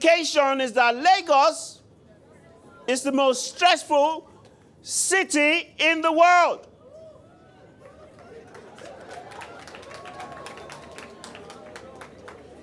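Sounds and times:
speech: 0:00.0 - 0:01.8, 0:02.9 - 0:06.7
audience clapping: 0:07.8 - 0:12.6.

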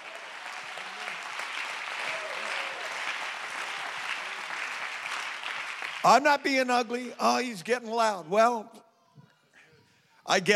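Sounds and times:
audience clapping hands: 0:00.0 - 0:06.6
speech: 0:06.0 - 0:08.8, 0:10.3 - 0:10.5.

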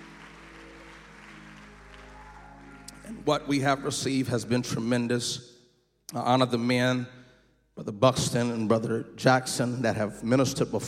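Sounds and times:
audience hand clapping: 0:00.0 - 0:03.7
speech: 0:03.1 - 0:05.5, 0:06.1 - 0:07.2, 0:07.8 - 0:10.8.

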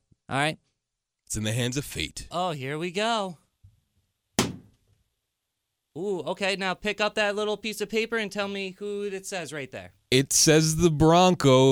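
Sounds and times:
speech: 0:00.3 - 0:00.7, 0:01.3 - 0:03.4, 0:06.0 - 0:11.7
balloon popping: 0:04.4 - 0:04.8.

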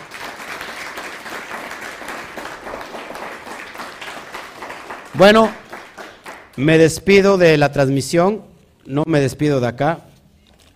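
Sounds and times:
audience applause: 0:00.0 - 0:06.7
speech: 0:05.2 - 0:05.6, 0:06.6 - 0:10.1.

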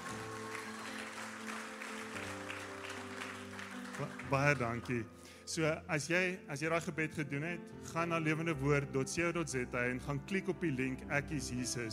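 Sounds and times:
church congregation cheering and applauding: 0:00.0 - 0:05.1
speech: 0:04.0 - 0:11.9.

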